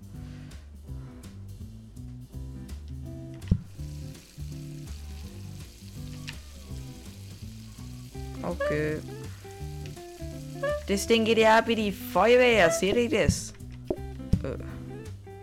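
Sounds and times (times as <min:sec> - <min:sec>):
food frying on a grill: 0:03.6 - 0:13.2
speech: 0:08.4 - 0:09.2, 0:10.9 - 0:13.5
looping melody: 0:08.4 - 0:09.3, 0:10.1 - 0:13.2.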